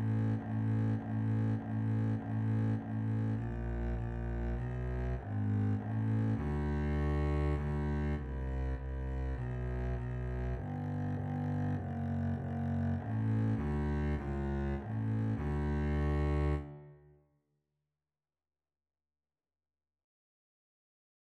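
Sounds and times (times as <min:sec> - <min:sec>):
double bass duet: 0:00.0 - 0:16.8.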